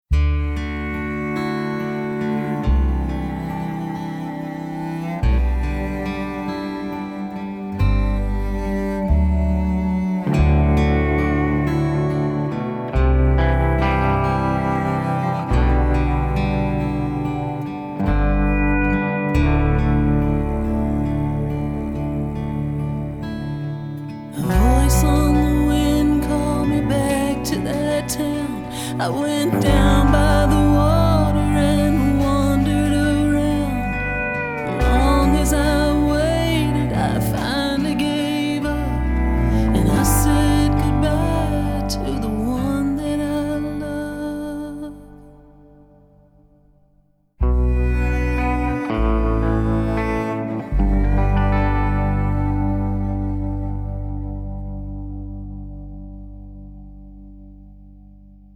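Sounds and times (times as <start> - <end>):
instrumental music: 0.1 - 58.5.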